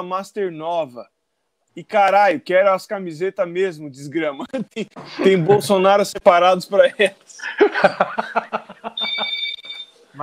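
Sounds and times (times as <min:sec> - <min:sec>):
speech: 0:00.0 - 0:01.2, 0:01.8 - 0:08.6
laughter: 0:07.4 - 0:09.4
doorbell ringing: 0:09.0 - 0:09.9.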